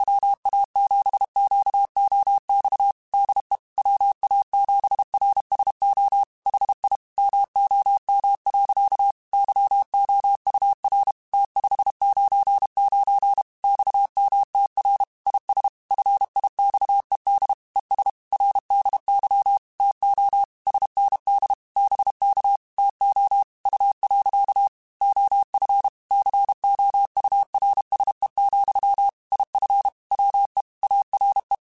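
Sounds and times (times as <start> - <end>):
Morse code radio QSOs: 0.0 - 31.6.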